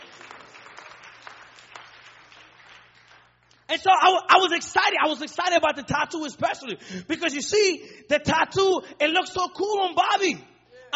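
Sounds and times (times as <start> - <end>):
audience clapping: 0.0 - 3.7
speech: 3.7 - 10.9.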